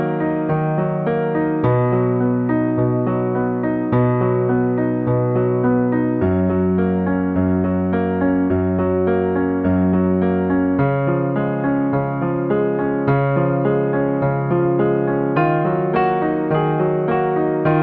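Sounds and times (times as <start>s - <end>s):
bittersweet piano: 0.0s - 17.8s.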